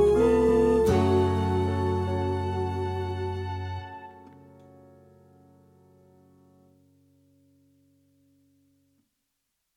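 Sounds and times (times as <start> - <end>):
tenor singing: 0.0 - 4.1.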